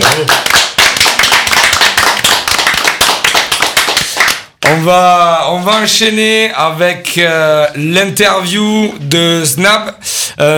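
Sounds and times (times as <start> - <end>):
audience applause: 0.0 - 4.4
speech: 4.8 - 10.5.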